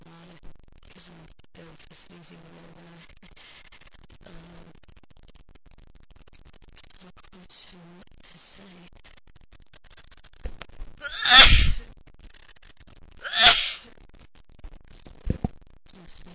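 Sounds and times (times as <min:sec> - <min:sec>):
man sneezing: 0:11.0 - 0:11.8, 0:13.2 - 0:13.8.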